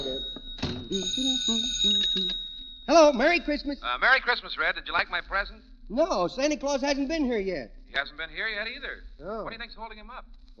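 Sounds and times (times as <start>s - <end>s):
shrill telephone bell ringing: 0.0s - 3.0s
speech: 1.4s - 10.5s.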